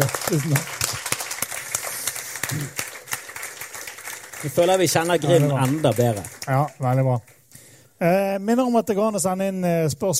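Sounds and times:
speech: 0.0 - 0.9, 2.5 - 2.8, 4.4 - 7.4, 8.0 - 10.1
audience applause: 0.0 - 7.4.

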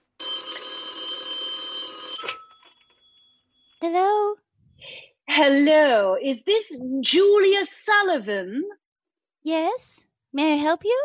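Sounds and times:
telephone ringing: 0.0 - 3.8
speech: 3.9 - 4.4, 5.4 - 8.8, 9.4 - 11.0.

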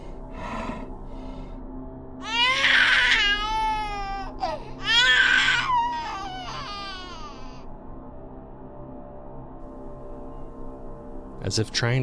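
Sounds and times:
creature mimicking a baby's cry: 2.2 - 7.6
speech: 11.5 - 12.0.

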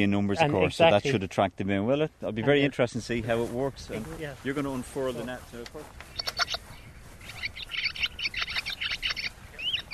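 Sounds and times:
speech: 0.0 - 6.5
steady background noise: 0.0 - 9.9
Barn Swallow twittering: 6.0 - 9.9.

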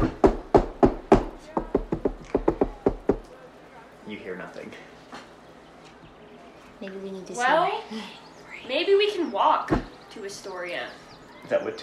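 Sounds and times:
knocking on a wooden door: 0.0 - 3.2
speech: 6.8 - 11.8.

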